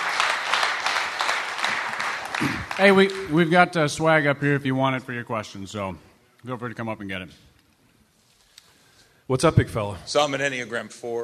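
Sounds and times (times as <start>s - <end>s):
audience applause: 0.0s - 3.5s
speech: 2.4s - 7.5s, 9.3s - 11.2s.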